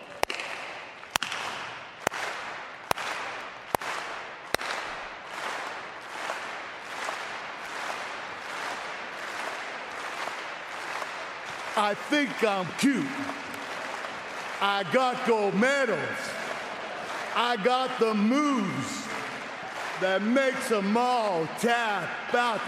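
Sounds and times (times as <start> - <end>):
slow clapping: 0.2 - 22.6
speech: 11.8 - 13.4, 14.6 - 16.3, 17.4 - 19.1, 20.0 - 22.6.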